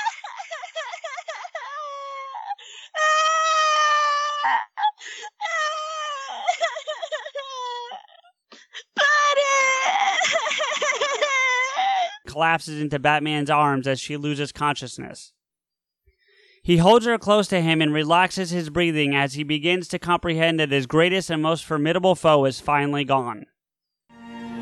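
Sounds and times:
woman wailing and sobbing: 0.0 - 12.2
speech: 12.4 - 15.4, 16.7 - 23.5.

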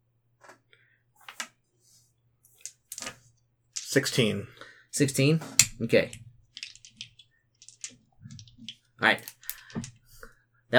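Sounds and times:
four dice being rolled: 2.6 - 3.2, 3.8 - 4.3, 5.6 - 10.3
speech: 3.9 - 6.2, 9.0 - 9.9.

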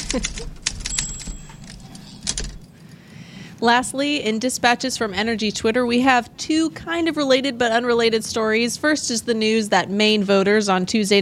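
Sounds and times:
typewriter typing sound effect: 0.0 - 2.7
speech: 0.1 - 0.6, 3.6 - 11.1.

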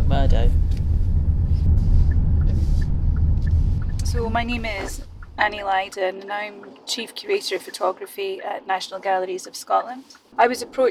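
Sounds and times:
car driven through Edinburgh toward North Edinburgh Arts: 0.0 - 6.0
speech: 4.2 - 10.8.

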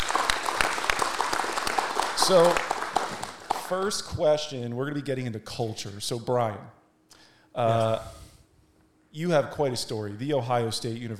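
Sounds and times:
audience applause: 0.0 - 4.1
speech: 2.3 - 2.7, 3.7 - 6.8, 7.6 - 8.2, 9.2 - 11.1.

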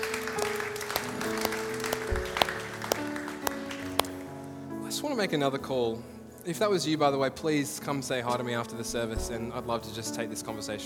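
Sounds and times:
audience applause: 0.0 - 4.4
speech: 5.1 - 10.8.

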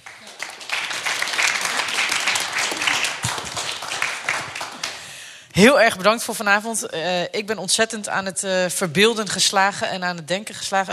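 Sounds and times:
audience applause: 0.0 - 5.1
speech: 5.6 - 10.9.

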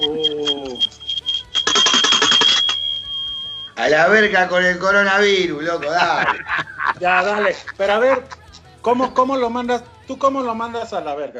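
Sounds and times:
small bell sound effect: 1.5 - 3.7
speech: 3.9 - 11.3
laughter: 5.5 - 8.7.

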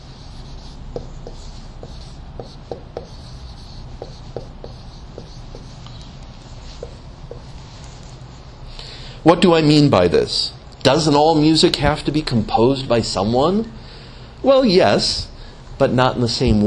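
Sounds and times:
lecturer writing notes: 0.0 - 8.3
speech: 1.0 - 1.2, 9.2 - 13.8, 14.4 - 16.6.

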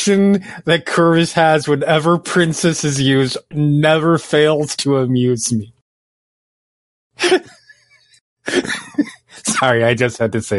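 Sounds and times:
speech: 0.0 - 5.8, 7.2 - 7.6, 8.5 - 10.5
person coughing: 7.2 - 7.6, 8.5 - 9.6
laughter: 7.2 - 7.8, 8.5 - 9.8.

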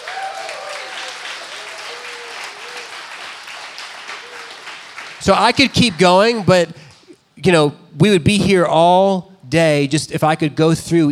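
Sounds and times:
audience clapping: 0.0 - 7.1
speech: 5.2 - 6.8, 7.4 - 11.1.

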